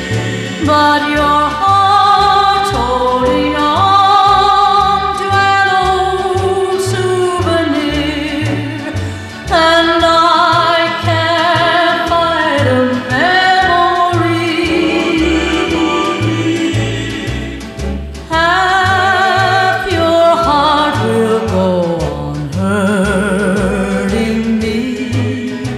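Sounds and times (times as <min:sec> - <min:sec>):
rockabilly rock and roll music: 0:00.0 - 0:25.7.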